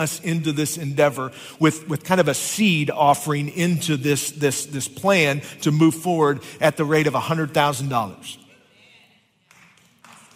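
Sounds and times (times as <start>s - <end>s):
speech: 0.0s - 8.4s
two people clapping: 9.4s - 10.3s.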